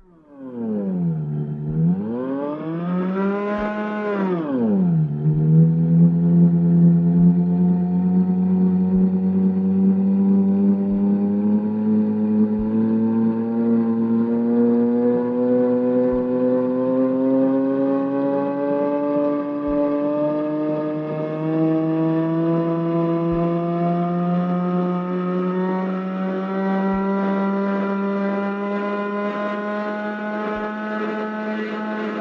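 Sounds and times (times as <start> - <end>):
intonarumori howler Ululatore drone: 0.0 - 32.1.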